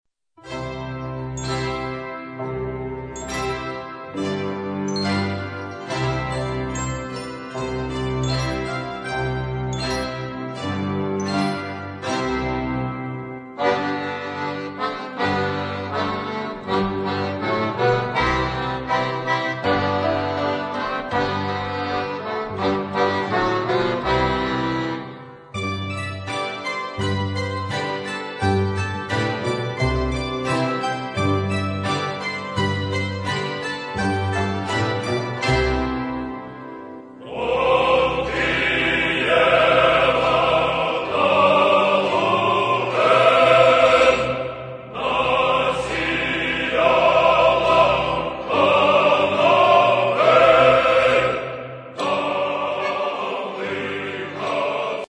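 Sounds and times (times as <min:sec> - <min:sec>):
folk music: 0:00.4 - 0:55.0.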